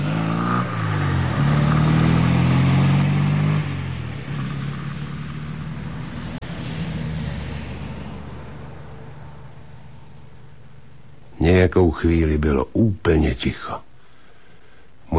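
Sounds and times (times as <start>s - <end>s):
car engine revving and driving away: 0.0s - 11.3s
speech: 11.5s - 13.9s.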